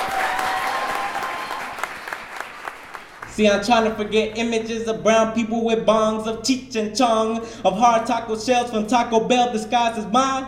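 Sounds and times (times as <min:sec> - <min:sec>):
audience applause: 0:00.0 - 0:03.4
speech: 0:03.4 - 0:10.4.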